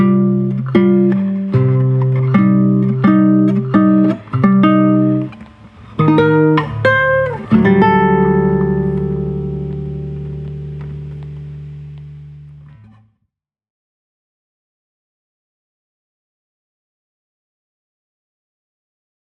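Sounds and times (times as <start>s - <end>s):
acoustic guitar berceuse: 0.0s - 13.0s.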